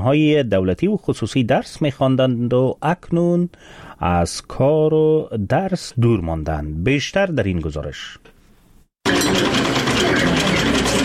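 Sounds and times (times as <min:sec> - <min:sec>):
speech: 0:00.0 - 0:08.3, 0:09.0 - 0:10.5
sewing machine in a tailoring training workshop: 0:09.0 - 0:11.0.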